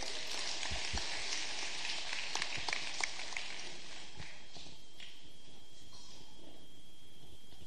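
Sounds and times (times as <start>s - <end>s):
church congregation clapping to welcome the pastor: 0.0s - 5.2s.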